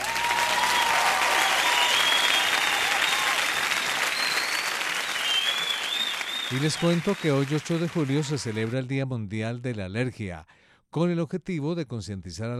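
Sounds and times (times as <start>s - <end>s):
applause: 0.0s - 8.8s
speech: 6.5s - 12.5s.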